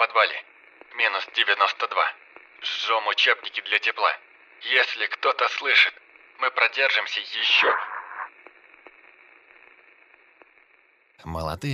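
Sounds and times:
band-limited radio static: 0:00.0 - 0:08.4
sharp crackling pops: 0:00.0 - 0:10.9
speech: 0:00.2 - 0:07.9, 0:11.2 - 0:11.7
thin high whine: 0:07.4 - 0:08.3.

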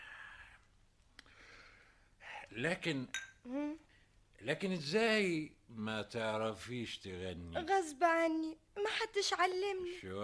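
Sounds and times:
speech: 0:02.5 - 0:10.2
glasses clinking: 0:03.1 - 0:03.4.

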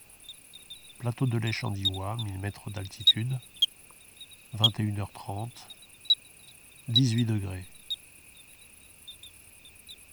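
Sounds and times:
bell cricket Eugryllodes pipiens chirping: 0:00.0 - 0:10.1
speech: 0:01.0 - 0:03.6, 0:04.5 - 0:05.8, 0:06.9 - 0:07.7.

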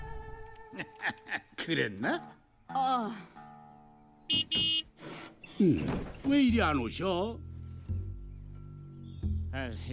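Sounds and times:
laughter: 0:00.7 - 0:01.7
speech: 0:01.7 - 0:03.3, 0:05.6 - 0:07.5, 0:09.5 - 0:09.9
car horn honking: 0:04.3 - 0:05.0.

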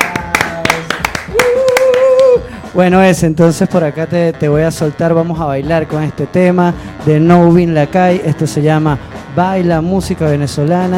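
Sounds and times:
rhythmic hand clapping for a radio guest: 0:00.0 - 0:03.0
speech: 0:02.8 - 0:10.9.

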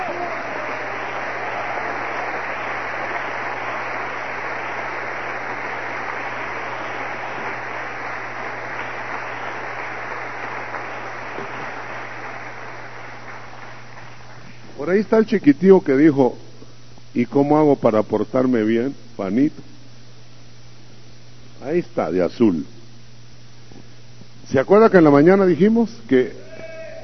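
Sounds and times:
audience applauding: 0:00.0 - 0:14.6
speech: 0:14.9 - 0:16.4, 0:17.2 - 0:19.7, 0:21.7 - 0:22.7, 0:24.5 - 0:26.4.

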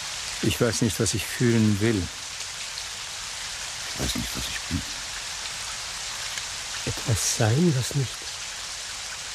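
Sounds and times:
steady rain: 0:00.0 - 0:09.3
speech: 0:00.4 - 0:02.2, 0:07.4 - 0:08.3.

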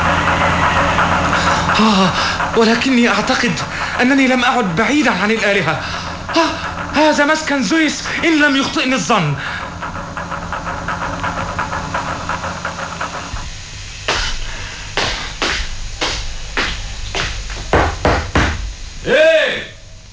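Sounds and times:
low rumbling hiss: 0:00.0 - 0:20.1
speech: 0:01.8 - 0:09.5
loud sharp knocks on a door: 0:17.2 - 0:18.7.

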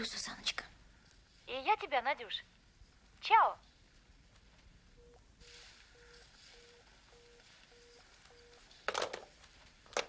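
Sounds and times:
speech: 0:00.0 - 0:00.5, 0:01.5 - 0:02.6, 0:03.2 - 0:03.7
telephone handset hung up in the cradle: 0:08.9 - 0:09.3.

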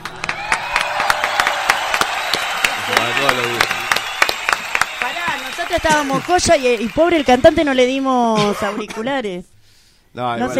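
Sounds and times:
applause for a singer after a song: 0:00.0 - 0:08.2
speech: 0:03.0 - 0:03.8, 0:05.6 - 0:09.5, 0:10.1 - 0:10.5.

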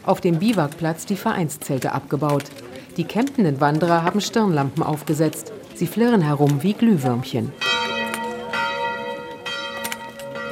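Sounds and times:
speech: 0:00.0 - 0:07.8
church bell ringing at 7 in the morning: 0:07.4 - 0:10.5.

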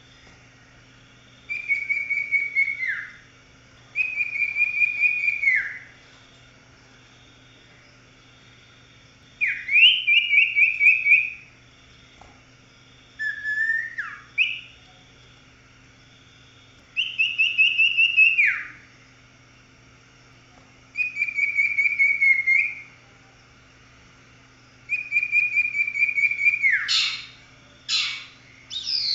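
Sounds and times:
Oriental magpie-robin whistling song: 0:01.5 - 0:03.2, 0:04.0 - 0:05.9, 0:09.4 - 0:11.4, 0:13.2 - 0:14.8, 0:17.0 - 0:18.8, 0:21.0 - 0:22.9, 0:24.9 - 0:29.1.

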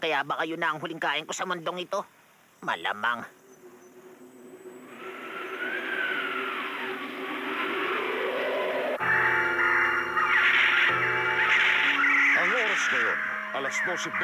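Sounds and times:
speech: 0:00.0 - 0:03.4, 0:13.6 - 0:14.2
harsh bird calls as birds flee their habitats around midday: 0:02.6 - 0:14.2
steady rushing background: 0:03.3 - 0:14.2.

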